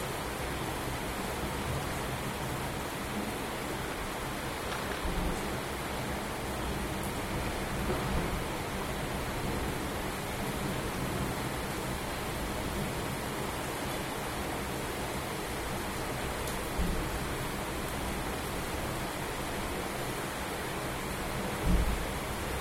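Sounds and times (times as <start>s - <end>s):
rain at home: 0.0s - 22.5s.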